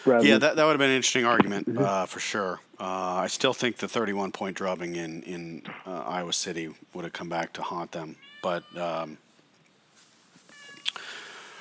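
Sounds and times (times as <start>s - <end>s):
speech: 0.0s - 9.2s
cat meowing: 8.1s - 9.0s, 10.5s - 11.0s.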